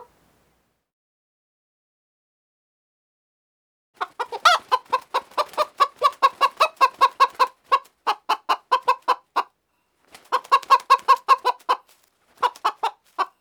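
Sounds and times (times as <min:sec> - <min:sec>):
birds: 0:04.0 - 0:13.3.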